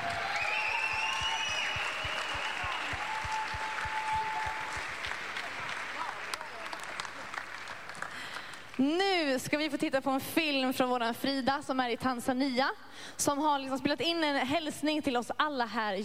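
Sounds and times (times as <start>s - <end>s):
audience applause for a choir: 0.0s - 8.8s
speech: 8.8s - 16.0s.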